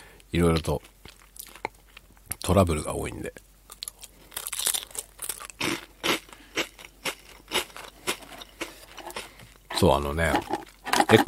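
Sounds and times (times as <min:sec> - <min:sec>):
speech: 0:00.3 - 0:01.0, 0:02.4 - 0:03.5, 0:09.8 - 0:11.2
crunchy potato snack being chewed: 0:00.8 - 0:02.4, 0:03.7 - 0:09.4.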